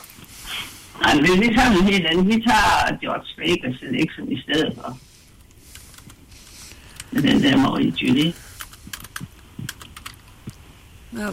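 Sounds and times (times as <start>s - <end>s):
speech: 1.0s - 5.1s, 7.1s - 8.4s, 11.1s - 11.3s
typing on a computer keyboard: 5.7s - 6.2s, 7.9s - 10.4s.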